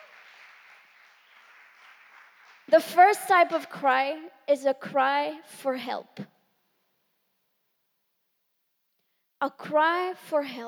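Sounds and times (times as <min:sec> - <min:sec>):
audience applauding: 0:00.0 - 0:03.4
speech: 0:02.7 - 0:06.4, 0:09.4 - 0:10.6.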